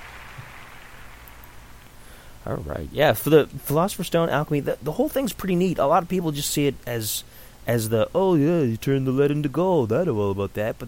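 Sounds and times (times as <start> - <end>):
applause sound effect: 0.0 - 1.7
speech: 2.4 - 10.8.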